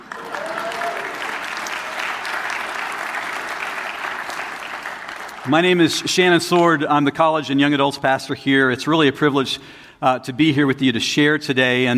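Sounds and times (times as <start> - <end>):
church audience applause: 0.0 - 6.0
speech: 5.5 - 11.9.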